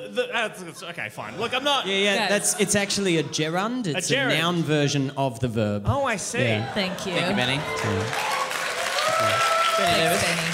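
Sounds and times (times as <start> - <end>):
speech: 0.1 - 8.4, 9.2 - 10.5
audience applause: 6.5 - 10.5.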